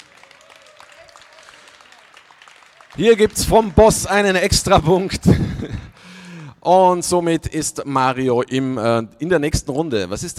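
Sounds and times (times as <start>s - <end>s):
laughter: 0.0s - 6.1s
faint audience applause at a university poetry slam: 0.0s - 6.5s
speech: 3.0s - 5.9s, 6.6s - 10.3s.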